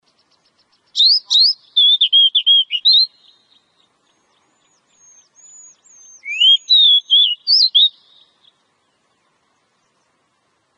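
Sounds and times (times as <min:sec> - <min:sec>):
Oriental magpie-robin whistling phrases: 0:01.0 - 0:03.4, 0:05.0 - 0:08.3.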